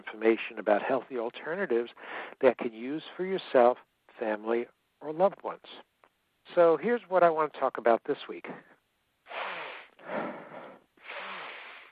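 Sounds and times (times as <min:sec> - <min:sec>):
speech: 0:00.1 - 0:05.9, 0:06.5 - 0:08.7
person sniffing like a dog: 0:09.3 - 0:11.9.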